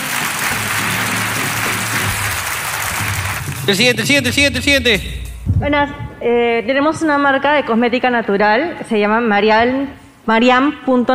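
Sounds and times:
audience applause: 0.0 - 5.2
speech: 3.7 - 11.1.

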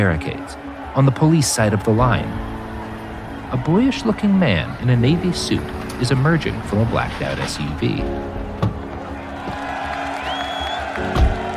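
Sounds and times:
speech: 0.0 - 2.5, 3.5 - 8.4
protest crowd roaring: 0.0 - 7.5, 8.4 - 11.5
high whistle: 10.1 - 11.0.

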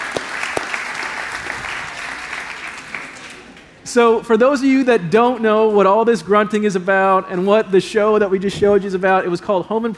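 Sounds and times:
audience applause: 0.0 - 3.7
speech: 3.9 - 9.9.

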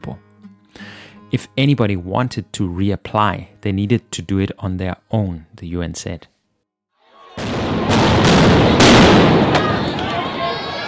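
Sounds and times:
speech: 0.0 - 0.3, 1.3 - 6.3
gunshots as riot police remove protesters from a UN building in South Africa: 7.4 - 10.2.

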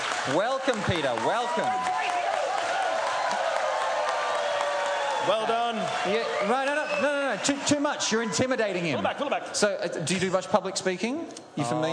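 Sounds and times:
audience applause: 0.0 - 9.0
speech: 0.2 - 2.2, 5.2 - 11.9
laughter: 8.4 - 9.6.

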